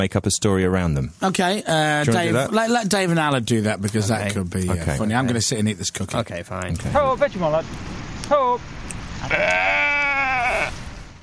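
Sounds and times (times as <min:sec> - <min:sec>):
speech: 0:00.0 - 0:10.8
low hiss: 0:00.0 - 0:11.2
sheep bleating while being herded in from a farm field: 0:09.2 - 0:10.8.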